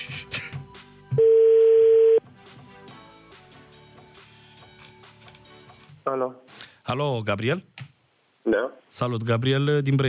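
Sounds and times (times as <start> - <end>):
telephone ringback tone of a call to a radio listener in Brăila: 1.2 - 2.2
speech: 6.2 - 7.8, 8.4 - 10.0.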